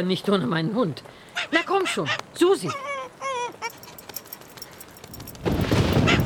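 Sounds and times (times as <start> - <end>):
speech: 0.0 - 2.9
lightning strike thunderclap: 5.2 - 6.2.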